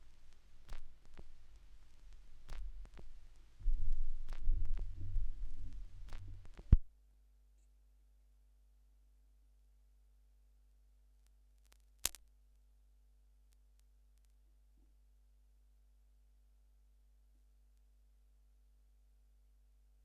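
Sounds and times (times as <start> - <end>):
vinyl record noise: 0.0 - 6.9, 11.6 - 12.3.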